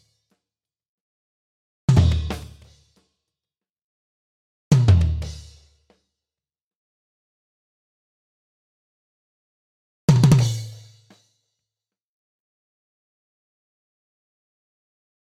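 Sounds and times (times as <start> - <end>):
tom drums: 1.9 - 2.8, 4.7 - 5.5, 10.1 - 11.1.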